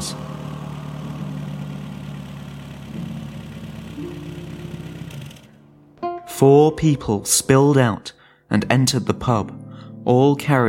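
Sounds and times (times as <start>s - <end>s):
old VW camper engine idling: 0.0s - 5.6s
speech: 6.4s - 10.6s.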